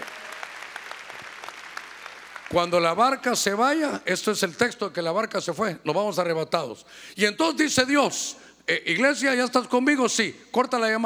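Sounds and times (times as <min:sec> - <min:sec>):
audience applauding loudly: 0:00.0 - 0:03.1
speech: 0:02.5 - 0:11.0.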